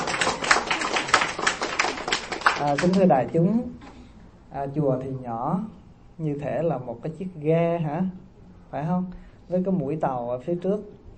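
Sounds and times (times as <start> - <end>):
audience clapping in a small Buddhist temple hall: 0.0 - 3.3
speech: 2.6 - 3.8, 4.5 - 11.0.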